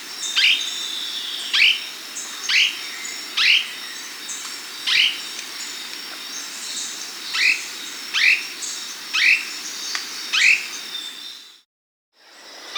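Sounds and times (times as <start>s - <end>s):
Slaty gnateater Conopophaga ardesiaca calling in the Andes of South America: 0.0s - 11.5s.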